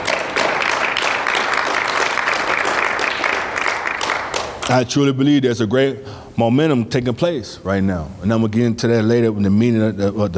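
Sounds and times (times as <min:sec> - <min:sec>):
audience hand clapping: 0:00.0 - 0:04.8
speech: 0:04.7 - 0:10.3.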